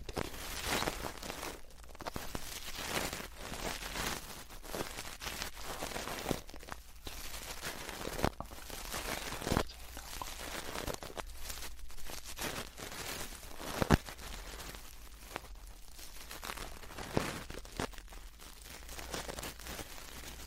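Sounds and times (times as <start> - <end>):
ear cleaning and touching rustling and crackling: 0.0 - 20.4.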